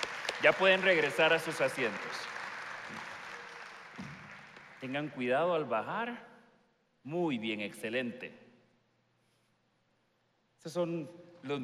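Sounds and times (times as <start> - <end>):
audience applause: 0.0 - 5.2
speech: 0.4 - 3.0, 4.8 - 6.3, 7.0 - 8.4, 10.6 - 11.6.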